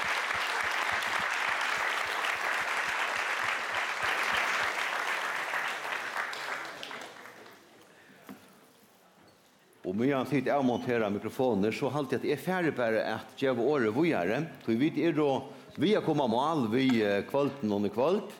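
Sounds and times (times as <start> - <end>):
audience applause: 0.0 - 7.7
speech: 9.9 - 18.3.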